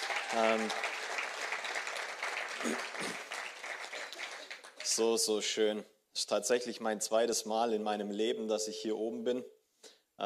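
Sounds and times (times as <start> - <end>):
audience applause: 0.0 - 5.2
speech: 0.3 - 1.0, 5.0 - 9.6.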